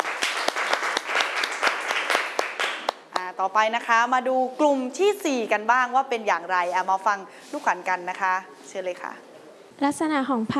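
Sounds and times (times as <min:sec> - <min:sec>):
applause: 0:00.0 - 0:03.3
speech: 0:03.4 - 0:10.5.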